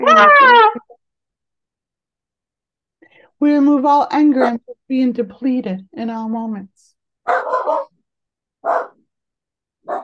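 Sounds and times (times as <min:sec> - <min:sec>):
speech: 0:00.0 - 0:00.8, 0:03.4 - 0:07.8
small dachshund barking: 0:07.2 - 0:08.0, 0:08.6 - 0:09.0, 0:09.8 - 0:10.0.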